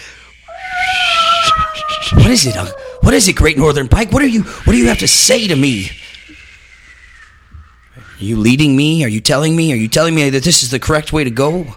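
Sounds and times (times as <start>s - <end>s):
creature howling: 0.5s - 7.5s
speech: 2.3s - 6.0s, 8.2s - 11.7s.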